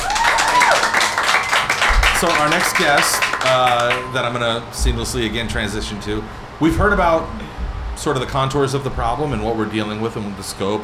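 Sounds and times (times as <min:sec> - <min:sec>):
audience round of applause: 0:00.0 - 0:04.7
speech: 0:02.2 - 0:10.8.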